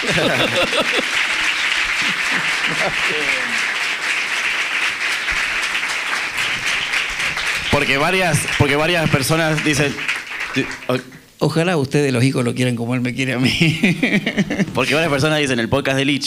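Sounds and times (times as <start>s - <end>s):
speech: 0.0s - 1.4s, 2.0s - 3.8s, 7.8s - 16.2s
laughter: 0.0s - 3.7s, 13.4s - 15.1s
audience applause: 0.0s - 11.2s.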